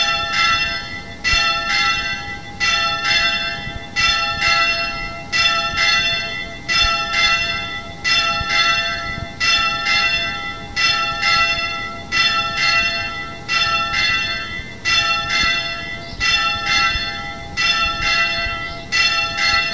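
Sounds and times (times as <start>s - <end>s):
church bells ringing for a said Mass: 0.0s - 19.7s.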